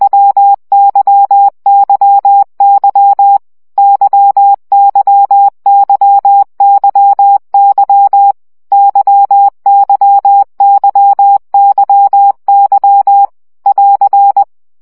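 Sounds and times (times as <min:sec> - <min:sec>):
morse code beeps at 17 baud: 0:00.0 - 0:14.5.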